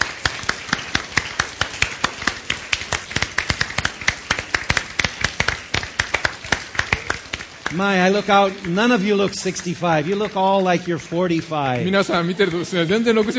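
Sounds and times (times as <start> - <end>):
audience applause: 0.0 - 13.3
speech: 7.7 - 13.3
laughter: 7.8 - 13.3.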